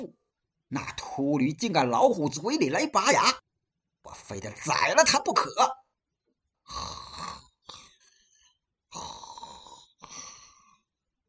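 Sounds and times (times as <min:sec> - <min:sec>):
speech: 0:00.0 - 0:03.4, 0:04.1 - 0:05.8
voice imitating loud snoring: 0:06.7 - 0:08.1, 0:08.9 - 0:10.8.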